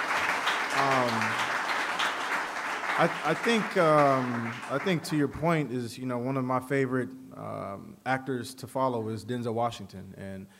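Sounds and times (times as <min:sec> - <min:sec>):
audience applause: 0:00.0 - 0:05.2
speech: 0:03.0 - 0:10.5.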